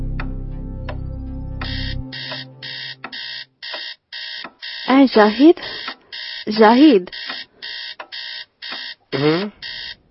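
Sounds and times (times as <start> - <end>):
alarm clock beeping at two in the night: 1.6 - 10.1
speech: 5.0 - 5.7, 6.5 - 7.2, 9.2 - 9.6.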